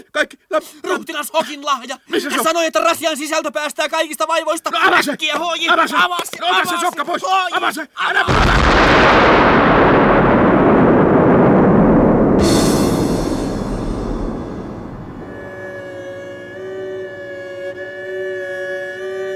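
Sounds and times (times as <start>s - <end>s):
speech: 0.0s - 9.9s
homemade gunpowder bomb explosion: 8.3s - 15.7s.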